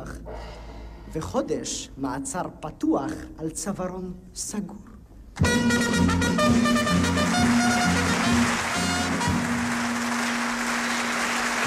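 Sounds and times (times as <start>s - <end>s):
speech: 1.2s - 7.6s
audience applause in live recording: 6.9s - 11.6s.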